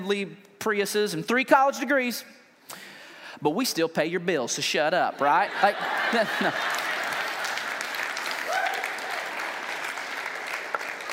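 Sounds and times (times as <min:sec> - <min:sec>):
speech: 0:00.0 - 0:06.8
laughter: 0:05.2 - 0:07.9
audience applause: 0:05.9 - 0:11.1.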